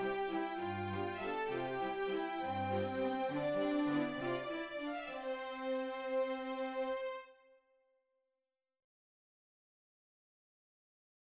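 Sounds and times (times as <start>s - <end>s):
Christmas waltz music: 0.0s - 7.2s.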